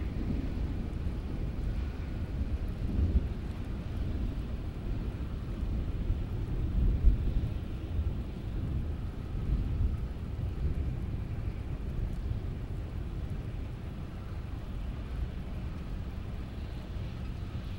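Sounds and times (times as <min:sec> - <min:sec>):
pleasant rain: 0:00.0 - 0:17.7.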